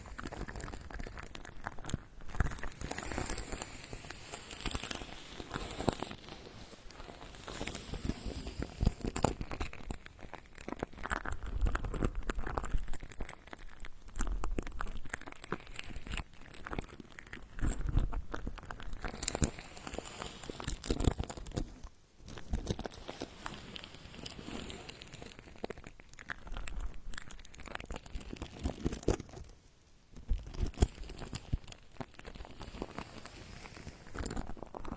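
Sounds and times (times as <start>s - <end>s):
ultra-fine ear touching, rubbing and crinkling: 0.0s - 34.9s.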